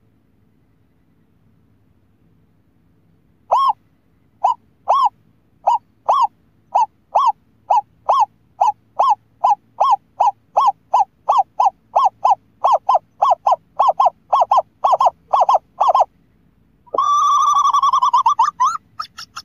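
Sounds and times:
scops owl hooting: 3.5 - 3.8, 4.4 - 16.1, 16.9 - 19.4.

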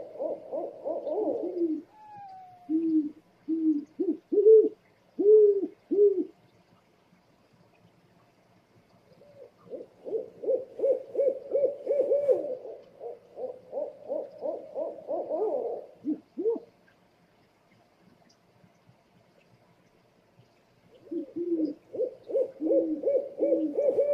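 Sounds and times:
owl hooting: 0.0 - 6.3, 9.2 - 16.7, 21.0 - 24.1.

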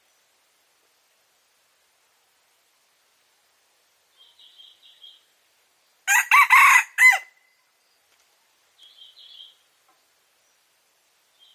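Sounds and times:
red junglefowl crowing: 6.1 - 7.4.

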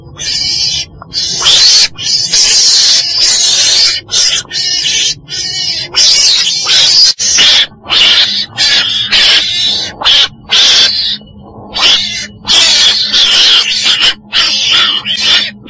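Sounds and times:
weasel screeching: 0.0 - 15.6.

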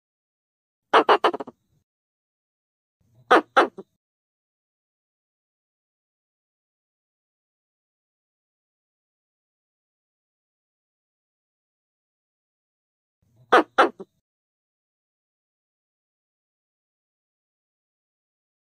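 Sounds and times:
Pallas's squirrel rasping chatter bursts: 1.0 - 1.5, 3.3 - 3.8, 13.5 - 14.1.

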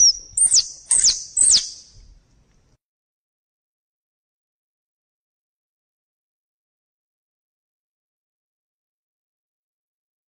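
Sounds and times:
squirrel chattering: 0.0 - 1.8.

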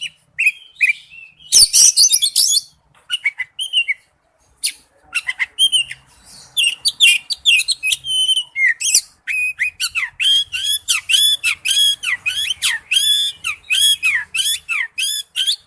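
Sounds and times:
Oriental magpie-robin song: 0.0 - 15.6.

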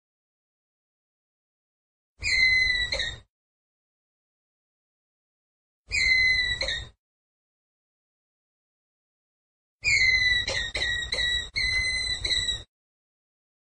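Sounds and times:
ground squirrel whistled call: 2.2 - 3.2, 5.9 - 7.0, 9.8 - 12.7.

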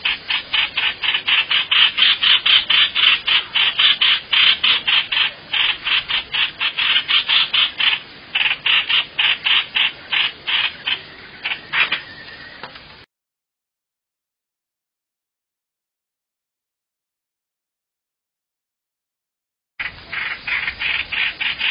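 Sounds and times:
bird rasping calls: 0.0 - 12.6, 19.8 - 21.6.

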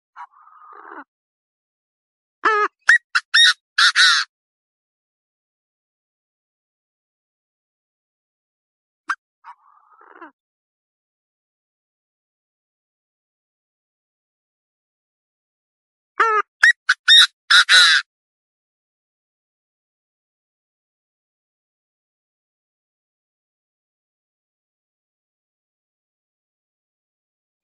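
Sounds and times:
partridge calling: 2.4 - 4.3, 16.2 - 18.0.

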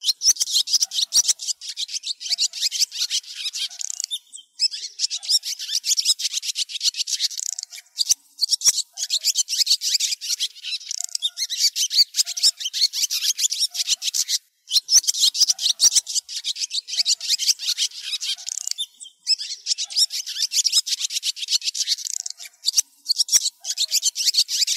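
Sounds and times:
swallows twittering: 0.0 - 24.7.

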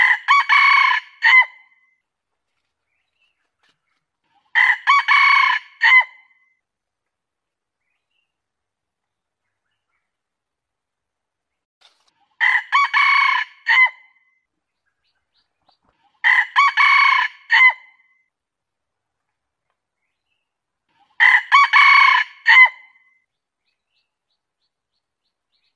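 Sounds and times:
junglefowl crowing: 0.0 - 1.5, 4.6 - 6.2, 12.4 - 14.0, 16.2 - 17.9, 21.2 - 22.9.

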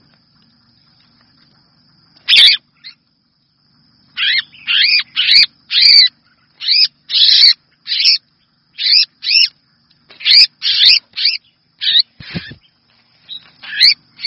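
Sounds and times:
red-whiskered bulbul distress call: 2.2 - 3.1, 4.1 - 14.2.

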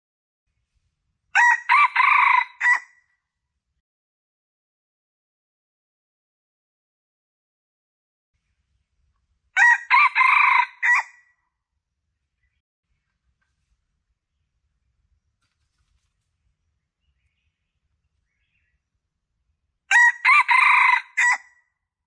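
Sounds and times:
Red junglefowl crowing: 1.4 - 3.0, 9.6 - 11.2, 19.9 - 21.5.

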